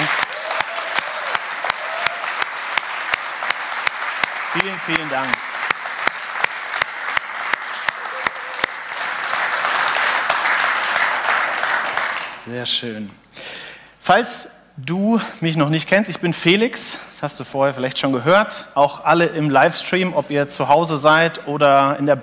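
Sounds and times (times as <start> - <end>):
loud audience applause: 0.0 - 12.4
speech: 4.6 - 5.4, 12.5 - 13.2, 14.1 - 22.2.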